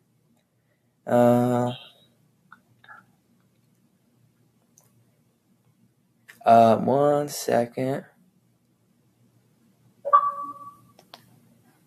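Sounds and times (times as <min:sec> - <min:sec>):
speech: 0:01.0 - 0:01.8, 0:06.5 - 0:08.1
phone notification alert tone: 0:10.1 - 0:10.9.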